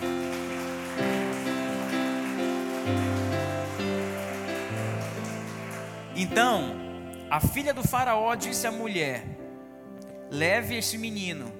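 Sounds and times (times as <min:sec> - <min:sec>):
audience applause: 0:00.0 - 0:06.8
speech: 0:06.2 - 0:09.4, 0:10.3 - 0:11.5.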